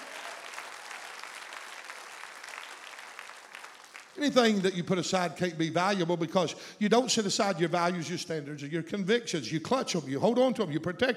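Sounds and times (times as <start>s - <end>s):
audience applause: 0.0s - 4.7s
speech: 4.2s - 11.1s.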